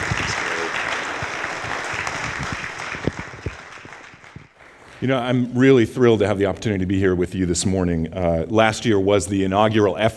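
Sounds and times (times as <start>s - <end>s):
church congregation clapping on a Sunday morning to welcome a speaker: 0.0s - 5.4s
speech: 5.0s - 10.1s.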